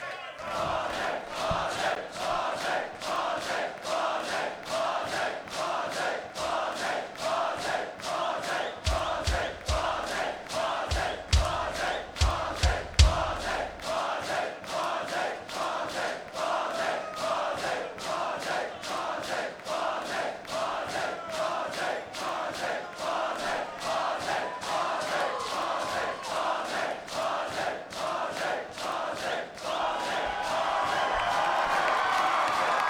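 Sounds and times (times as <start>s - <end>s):
rhythmic clapping or stomping: 0.4s - 32.8s
deep thumps: 8.9s - 13.8s
concert crowd screaming and cheering for an encore: 23.4s - 26.8s, 29.7s - 32.8s.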